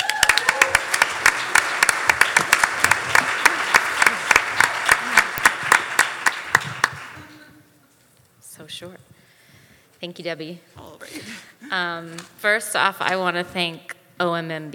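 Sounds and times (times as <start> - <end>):
audience applause: 0.0 - 7.4
speech: 10.0 - 14.7.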